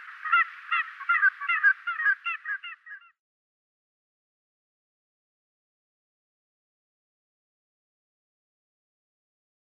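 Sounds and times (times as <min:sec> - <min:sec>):
Common scoter males calling: 0:00.0 - 0:03.1.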